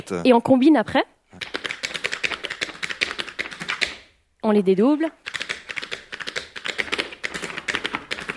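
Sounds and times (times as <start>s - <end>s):
speech: 0.0s - 1.6s, 4.4s - 5.3s
tap dancing steps on the floor in a tap class demonstration: 1.4s - 4.1s, 5.2s - 8.3s.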